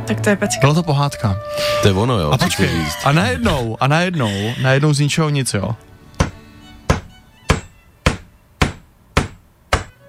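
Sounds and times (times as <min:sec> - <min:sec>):
speech: 0:00.1 - 0:05.9
laughter: 0:01.7 - 0:05.4
hammer knocking in nails: 0:06.2 - 0:10.0.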